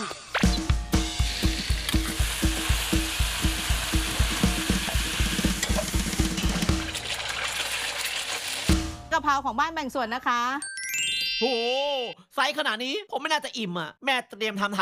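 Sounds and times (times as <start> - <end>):
fresh home-laid duck eggs frying sunny-side up in a pan: 0.9 - 9.0
speech: 9.2 - 10.7, 11.4 - 14.8.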